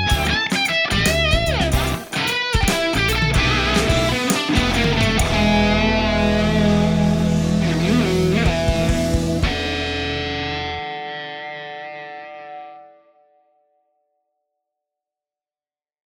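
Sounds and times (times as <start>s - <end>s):
snapper test tone at medium gain: 0.0s - 10.8s.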